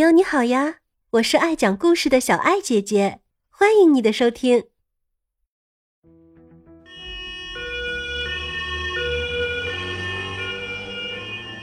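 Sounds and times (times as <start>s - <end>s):
speech: 0.0s - 4.7s
ambulance siren: 6.9s - 11.6s.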